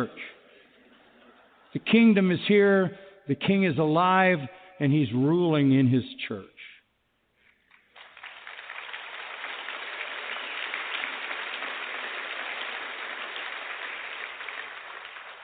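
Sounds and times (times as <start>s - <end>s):
speech: 0.0s - 0.2s, 1.7s - 6.5s
audience applause: 7.9s - 15.4s.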